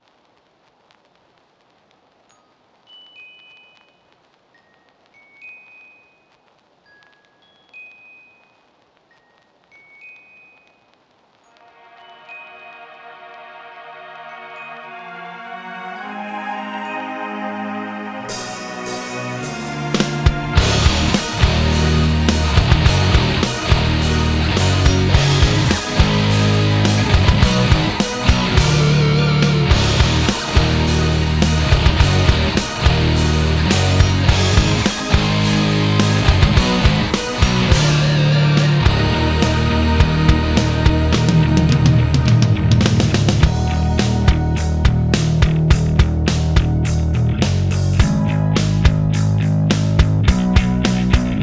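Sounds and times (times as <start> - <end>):
instrumental Euro-metal cover: 17.0 - 51.4.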